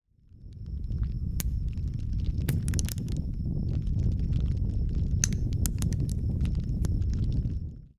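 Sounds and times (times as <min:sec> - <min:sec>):
fire: 0:00.1 - 0:07.9.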